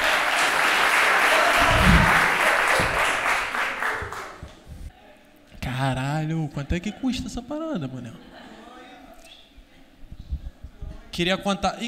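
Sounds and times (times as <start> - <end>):
crowd applause: 0.0 - 4.5
speech: 6.5 - 8.5, 11.2 - 11.8.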